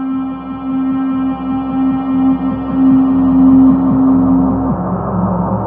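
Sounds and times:
guitars playing octaves: 0.2 - 5.5.

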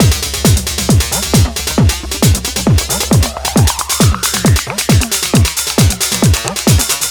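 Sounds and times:
house music: 0.0 - 7.0.

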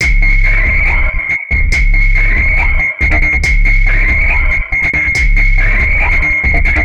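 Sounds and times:
beat loop: 0.0 - 6.8.

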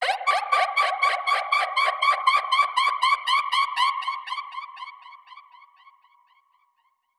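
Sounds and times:
alarm siren with modulation processing: 0.0 - 5.0.

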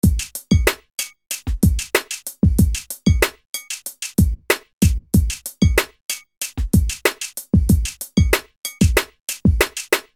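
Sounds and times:
music beat: 0.0 - 10.1.

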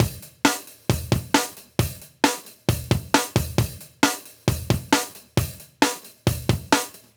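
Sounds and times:
live drum breaks: 0.0 - 7.1.

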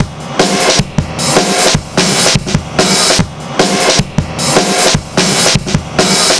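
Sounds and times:
drum loop at 150 bpm: 0.0 - 6.3.

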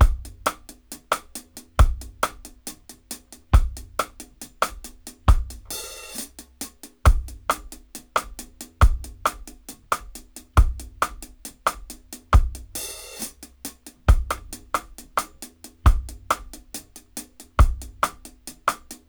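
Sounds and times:
dry dub drum loop: 0.0 - 18.8.

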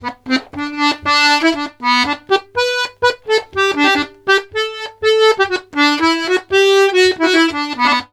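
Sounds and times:
accordions playing polka: 0.0 - 8.1.

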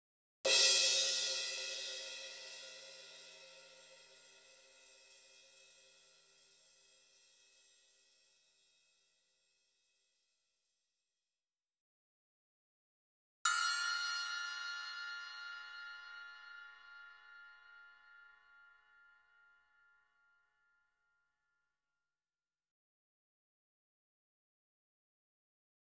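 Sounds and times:
crash cymbal: 0.5 - 8.3, 13.5 - 18.3.

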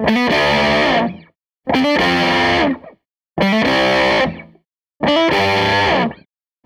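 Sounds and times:
SG electric guitar loop: 0.0 - 6.2.

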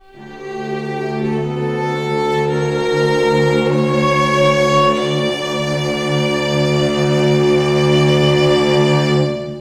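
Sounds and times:
chamber strings in D minor: 0.0 - 9.5.

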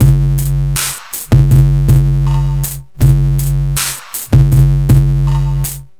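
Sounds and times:
structured IDM rhythm: 0.0 - 5.9.

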